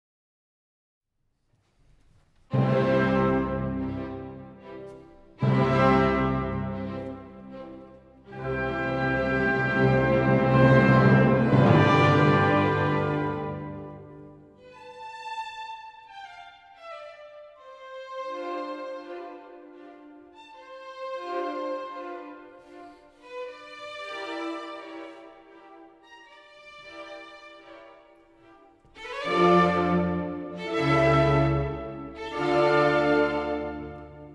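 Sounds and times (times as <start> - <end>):
orchestra playing symphony in C major: 2.5 - 34.3.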